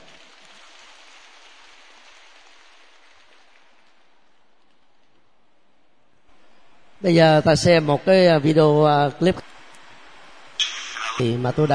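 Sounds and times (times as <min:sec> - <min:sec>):
audience applause: 0:00.0 - 0:05.0
speech: 0:07.0 - 0:09.5, 0:11.2 - 0:11.7.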